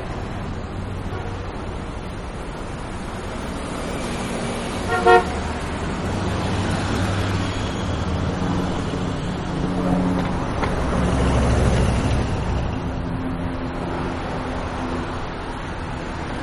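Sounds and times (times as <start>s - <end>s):
medium traffic with trains and vehicles: 0.0s - 16.4s.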